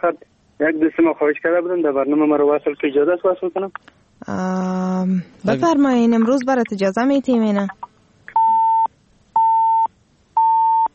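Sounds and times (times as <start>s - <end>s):
speech: 0.0s - 7.9s
mid-pitched electronic phone line beeps from a call that failed to connect: 8.3s - 10.9s.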